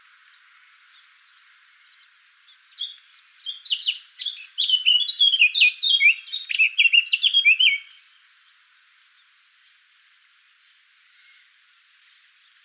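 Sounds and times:
Eurasian blackcap Sylvia atricapilla singing chattering phrases: 2.8 - 8.0.

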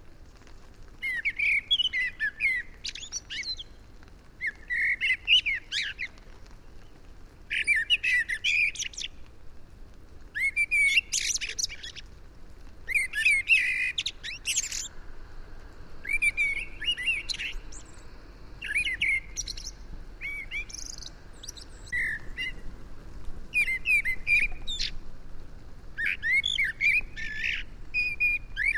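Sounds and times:
steady hiss: 0.0 - 28.7
common blackbird singing: 1.0 - 3.7, 4.4 - 6.1, 7.5 - 9.2, 10.4 - 12.0, 12.9 - 14.9, 16.0 - 18.0, 18.6 - 22.6, 23.6 - 25.0, 26.0 - 28.7.

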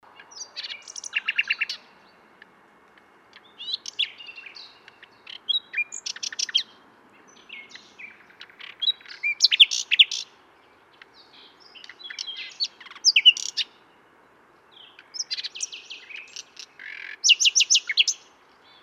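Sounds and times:
common nightingale song: 0.0 - 18.8.

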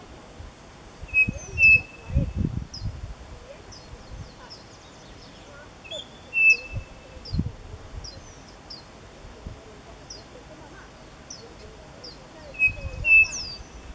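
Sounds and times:
high chirps: 1.0 - 2.9, 3.7 - 8.9, 12.0 - 13.9
bird whistling: 1.1 - 2.5, 3.7 - 7.4, 12.0 - 13.9.

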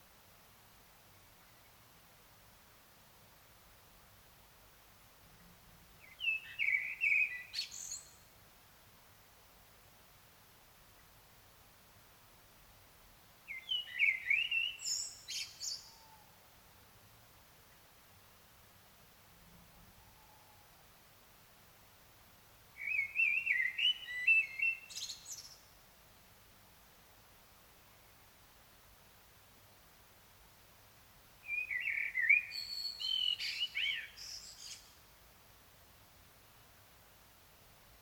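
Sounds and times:
common blackbird song: 6.0 - 8.3, 13.5 - 16.4, 22.8 - 25.8, 31.4 - 35.0.

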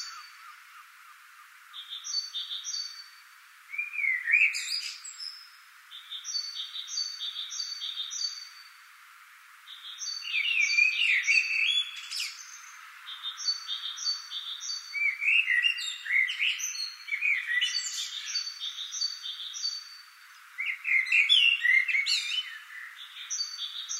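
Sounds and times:
common blackbird Turdus merula song: 0.0 - 8.9, 9.6 - 23.9.

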